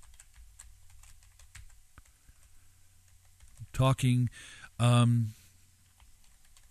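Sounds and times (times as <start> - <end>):
rapid typing on a computer keyboard: 0.0 - 2.5, 3.1 - 3.7, 5.9 - 6.7
low steady hum: 0.0 - 6.7
speech: 3.8 - 5.4.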